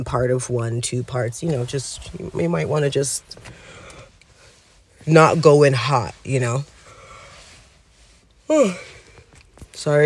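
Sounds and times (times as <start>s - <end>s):
speech: 0.0s - 3.8s, 5.0s - 6.7s, 8.5s - 8.9s, 9.8s - 10.0s
person yawning: 8.5s - 9.0s.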